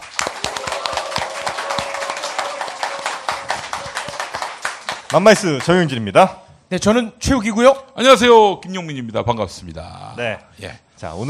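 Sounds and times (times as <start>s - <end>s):
applause: 0.0s - 5.9s
speech: 5.1s - 11.2s.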